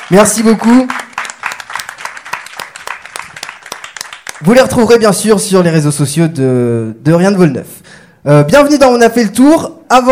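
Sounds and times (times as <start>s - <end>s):
audience applause: 0.0s - 4.6s
speech: 0.1s - 1.0s, 4.4s - 10.1s.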